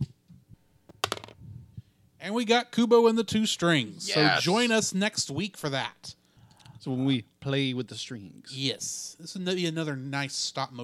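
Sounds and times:
dice clattering across a hard surface: 1.0 - 1.4
speech: 2.2 - 6.2, 6.8 - 10.8.

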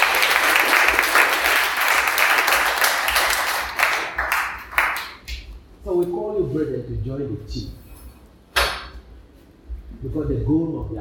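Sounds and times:
audience clapping: 0.0 - 5.5
speech: 6.5 - 7.8, 10.0 - 11.0.

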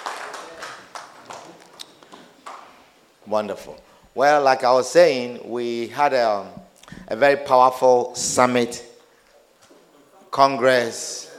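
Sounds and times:
audience clapping hands: 0.0 - 2.8
speech: 3.3 - 8.9, 10.4 - 11.2.

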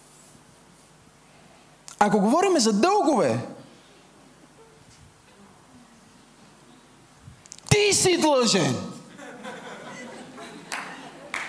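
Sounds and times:
speech: 2.0 - 3.6, 7.9 - 8.9
laughter: 9.1 - 11.4
audience clapping: 10.3 - 11.4.

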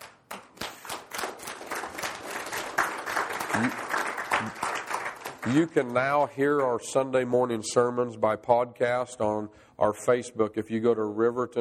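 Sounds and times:
audience applause: 0.8 - 6.8
speech: 3.6 - 3.8, 5.4 - 11.5.

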